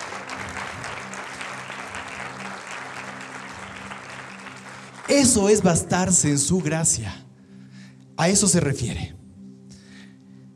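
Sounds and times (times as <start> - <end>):
crowd clapping: 0.0 - 7.0
speech: 5.1 - 7.2, 8.2 - 9.2.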